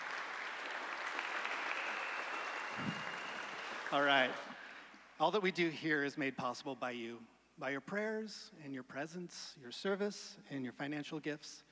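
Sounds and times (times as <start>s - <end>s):
church congregation at HUMC clapping: 0.0s - 4.9s
speech: 3.9s - 4.6s, 5.2s - 11.6s.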